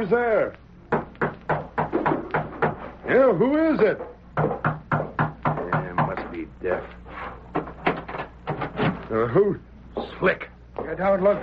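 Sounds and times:
speech: 0.0s - 0.6s, 3.1s - 4.6s, 9.1s - 11.4s
knocking at a door: 0.9s - 2.8s, 4.0s - 6.4s, 7.5s - 8.7s.

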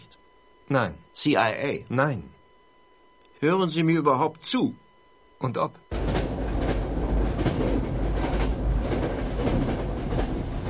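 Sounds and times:
speech: 0.7s - 2.4s, 3.4s - 4.8s, 5.4s - 5.9s
train running on rails: 5.9s - 10.6s.

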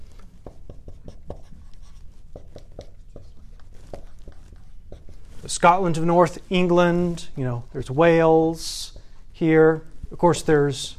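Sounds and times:
drawing a map of Britain and Ireland on a board: 0.3s - 5.3s
speech: 5.5s - 10.9s.

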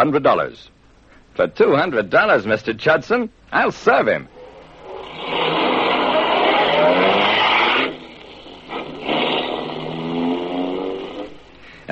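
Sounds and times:
speech: 0.0s - 0.8s, 1.4s - 4.4s
car engine revving and accelerating: 4.3s - 11.5s.

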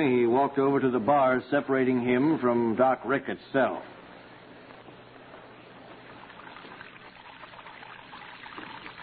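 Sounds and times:
speech: 0.0s - 4.0s
water pouring from wash basin onto cell floor: 6.3s - 9.0s.

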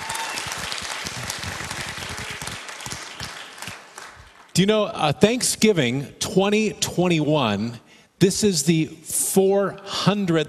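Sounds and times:
audience clapping hands: 0.0s - 4.6s
speech: 4.6s - 10.4s.

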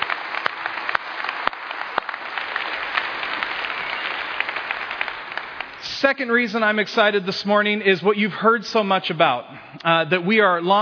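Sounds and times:
audience applauding the children: 0.0s - 6.8s
speech: 6.0s - 10.7s.

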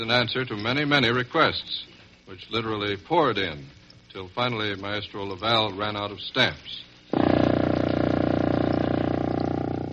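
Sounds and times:
speech: 0.0s - 7.8s
very low contrabassoon note: 7.1s - 9.9s.

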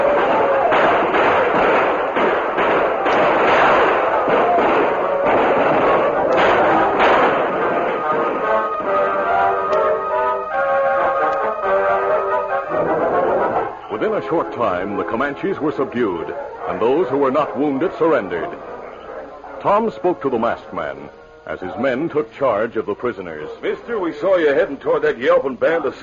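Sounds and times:
gunfire bursts: 0.0s - 10.0s
orchestral music score: 7.6s - 15.0s
speech: 14.3s - 18.7s, 19.6s - 26.0s.

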